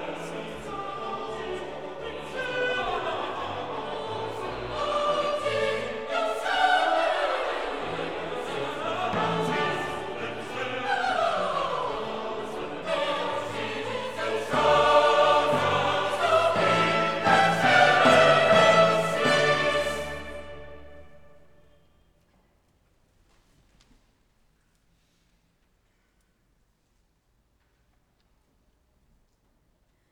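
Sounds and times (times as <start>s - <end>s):
choral requiem music in D minor: 0.0s - 21.9s.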